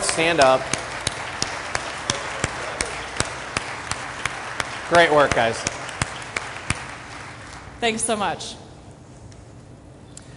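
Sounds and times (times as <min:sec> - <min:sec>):
crowd applauding: 0:00.0 - 0:07.8
speech: 0:00.2 - 0:00.8, 0:04.9 - 0:05.8, 0:07.8 - 0:08.6.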